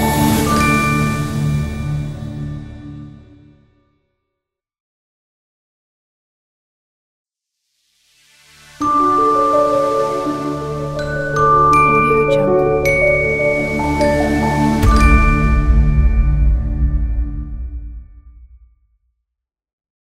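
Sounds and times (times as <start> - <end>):
elegant ident jingle: 0.0 - 2.5, 8.8 - 17.7.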